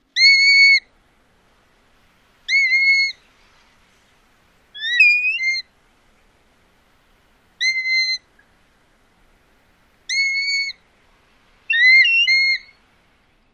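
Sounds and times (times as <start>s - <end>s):
Black-bellied Plover calls: 0.0s - 0.9s, 2.3s - 3.8s, 4.6s - 5.7s, 7.4s - 8.6s, 10.0s - 10.8s, 11.6s - 12.8s.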